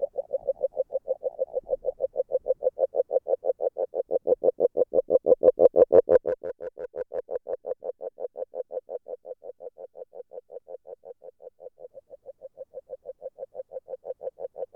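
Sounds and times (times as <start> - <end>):
agile frog call in Hungary: 0.0 - 14.7.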